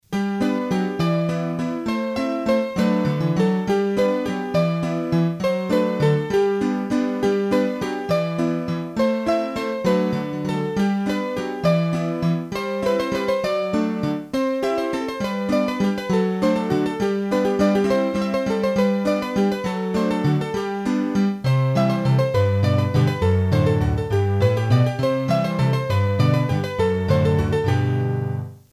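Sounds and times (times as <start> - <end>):
hurdy-gurdy waltz: 0.2 - 28.6.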